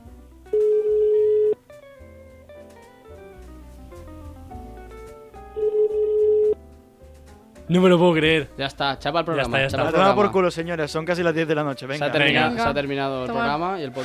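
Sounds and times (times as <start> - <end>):
music: 0.0 - 14.0
ringback tone of an unanswered outgoing phone call: 0.5 - 1.6, 5.5 - 6.6
speech: 7.7 - 14.0.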